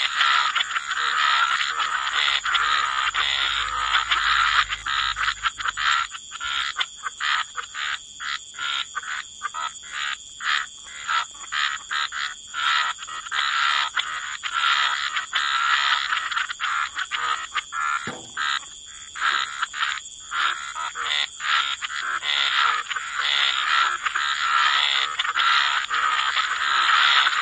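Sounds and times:
frog chorus croaking: 0.0 - 27.4
brief low thud: 18.1 - 18.6.

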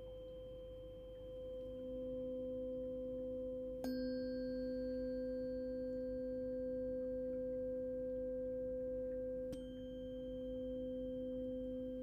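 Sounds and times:
tuning fork strike: 0.0 - 12.0
tuning forks ringing: 3.8 - 8.1, 9.5 - 12.0.

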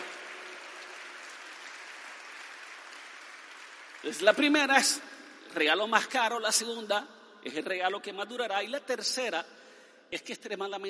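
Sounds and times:
crowd applauding: 0.0 - 5.2
speech: 4.0 - 10.8.

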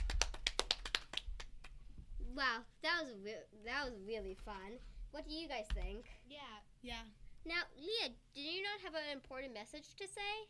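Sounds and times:
small group clapping: 0.0 - 1.8
speech: 2.4 - 10.4.

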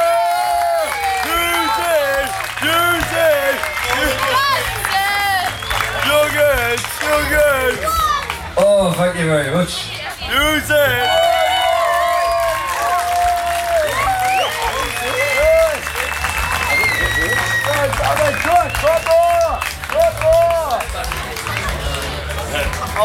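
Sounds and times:
people shouting excitedly: 0.0 - 5.4, 10.4 - 15.8
crowd cheering and whooping: 0.0 - 8.3, 10.4 - 20.8
audience clapping: 0.0 - 9.2, 10.3 - 23.0
speech: 8.6 - 11.3, 22.6 - 23.0.

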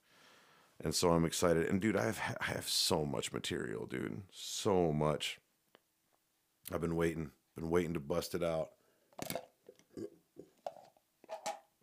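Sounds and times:
speech: 0.8 - 5.4, 6.7 - 10.1
person burping while drinking water: 9.3 - 10.5.

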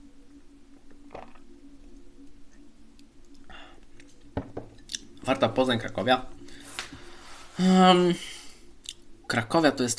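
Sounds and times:
low steady hum: 0.0 - 9.9
person sipping a drink: 1.1 - 1.4
speech: 5.3 - 6.4, 7.6 - 8.3, 9.3 - 9.9.

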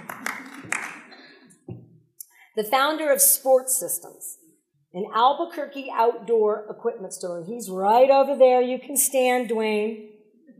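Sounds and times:
crowd clapping: 0.0 - 1.4
speech: 2.6 - 4.3, 4.9 - 10.1.

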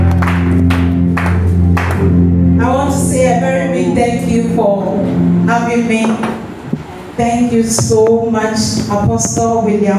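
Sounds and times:
audience clapping as a clap offering: 0.0 - 2.2
sustained organ or keyboard chords: 0.0 - 9.8
speech: 4.2 - 6.4, 7.2 - 9.9.

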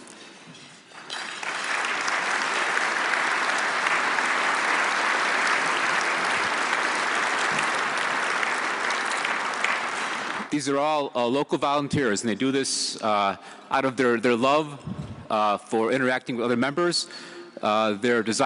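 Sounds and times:
audience applause: 1.0 - 10.5
speech: 10.6 - 18.4.

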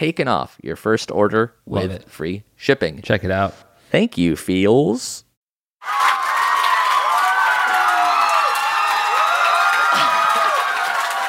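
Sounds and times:
speech: 0.0 - 5.2
large live audience cheering and applauding: 5.8 - 11.2
whoops and shouts: 5.8 - 11.2.

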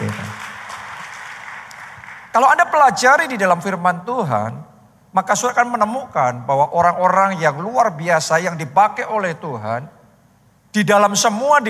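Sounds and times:
crowd applauding: 0.0 - 2.4
speech: 2.4 - 10.0, 10.7 - 11.6.

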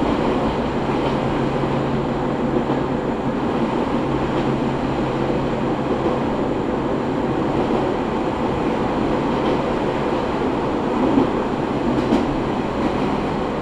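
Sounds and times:
Izuhakone Railway Daiyuzan Line train rumble and rattle: 0.0 - 13.6.

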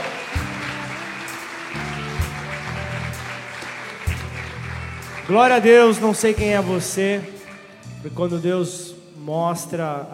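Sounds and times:
crowd applauding in a large room: 0.0 - 7.9
sustained low keyboard chords: 0.0 - 9.5
speech: 5.3 - 7.3, 8.0 - 10.1.

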